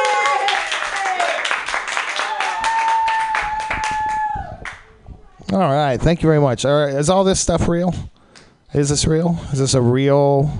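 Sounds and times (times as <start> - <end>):
audience applauding a comedian at a comedy club: 0.0 - 4.8
speech: 5.6 - 8.1, 8.7 - 10.5.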